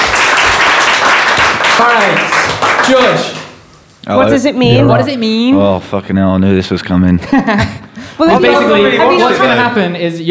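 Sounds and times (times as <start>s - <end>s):
round of applause: 0.0s - 3.6s
speech: 1.8s - 3.4s, 4.0s - 10.2s
laughter: 7.2s - 9.4s.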